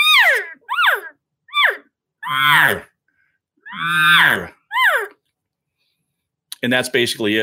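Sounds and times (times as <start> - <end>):
person imitating cow elk calls: 0.2 - 2.9, 3.7 - 5.1
speech: 6.7 - 7.4.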